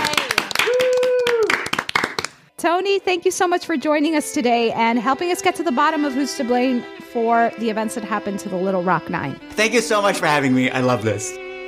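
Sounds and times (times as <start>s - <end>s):
person cheering: 0.0s - 1.7s
audience clapping: 0.0s - 2.5s
speech: 2.6s - 11.4s.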